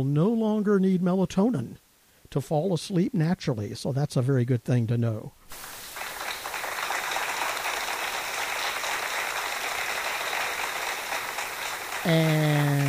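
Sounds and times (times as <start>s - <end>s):
speech: 0.0s - 5.8s, 12.0s - 12.5s
crowd applause: 5.5s - 12.8s.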